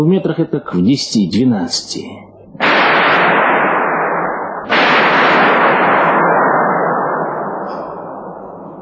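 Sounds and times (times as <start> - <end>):
speech: 0.0 - 2.7
artificial lightning discharge at high-voltage test stand: 2.6 - 8.8.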